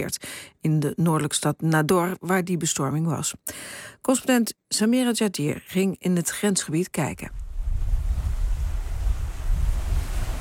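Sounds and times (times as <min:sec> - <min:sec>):
speech: 0:00.0 - 0:07.4
wind buffeting the microphone: 0:07.3 - 0:10.3
Mediterranean Sea waves washing and roaring on the coast at Nador, Morocco: 0:07.4 - 0:10.3.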